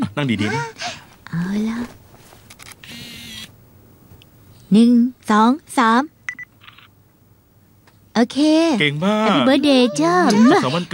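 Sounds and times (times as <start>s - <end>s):
speech: 0.2s - 2.0s, 4.7s - 6.2s, 8.2s - 10.9s
camera shutter taking a family photo at a birthday celebration: 2.5s - 3.5s.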